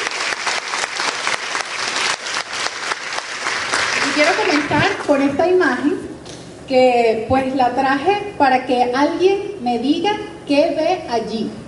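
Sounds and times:
audience applause: 0:00.0 - 0:05.2
speech: 0:04.2 - 0:06.1, 0:06.7 - 0:11.6.

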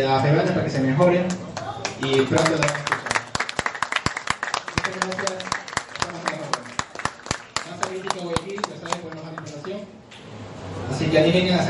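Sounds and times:
speech: 0:00.0 - 0:03.1, 0:11.2 - 0:11.6
audience applause: 0:01.6 - 0:09.7.

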